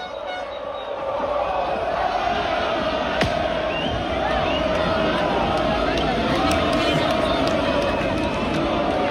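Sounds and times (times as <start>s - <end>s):
60,000 Lens football fans cheering their team's return after winning the Coupe de France: 0.0s - 9.0s
Lens football fans clapping: 3.2s - 9.0s.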